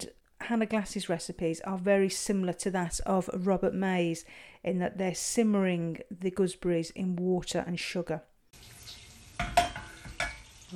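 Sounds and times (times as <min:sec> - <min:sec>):
speech: 0:00.5 - 0:08.3
butter melting and sizzling in a pan: 0:08.5 - 0:10.7.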